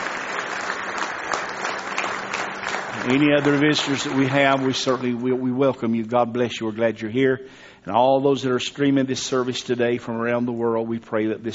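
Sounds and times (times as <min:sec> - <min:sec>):
church congregation applauding visitors at a morning service: 0:00.0 - 0:05.5
speech: 0:03.1 - 0:11.5.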